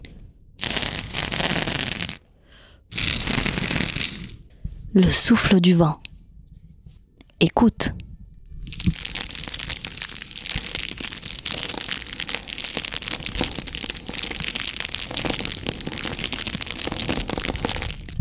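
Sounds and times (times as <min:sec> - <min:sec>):
crackling fire flame: 0:00.0 - 0:04.5, 0:08.6 - 0:18.2
speech: 0:05.0 - 0:06.0, 0:07.4 - 0:08.0.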